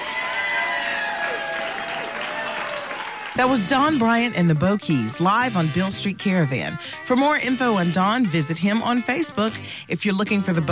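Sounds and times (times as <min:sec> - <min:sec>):
faint cheers and whistles: 0:00.0 - 0:03.4
crowd applauding a live performer: 0:00.0 - 0:04.0
speech: 0:03.4 - 0:10.6.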